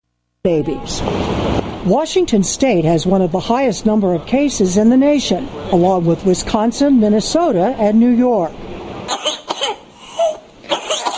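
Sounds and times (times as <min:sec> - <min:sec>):
speech: 0:00.4 - 0:08.6
whooping cough coughing spell: 0:09.1 - 0:11.1
whooping gasp for breath: 0:09.9 - 0:10.4.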